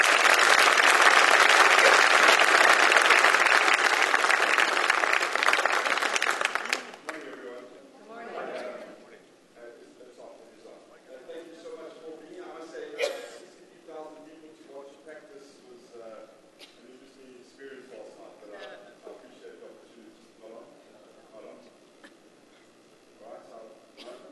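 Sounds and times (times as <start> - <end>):
audience applause welcoming a pastor: 0.0 - 7.6.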